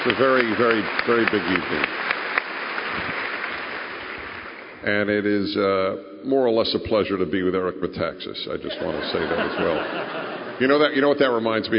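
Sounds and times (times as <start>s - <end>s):
speech: 0.0s - 2.1s, 4.8s - 11.7s
applause for a pastor at an evening event: 0.0s - 4.8s
laughter: 8.6s - 11.0s.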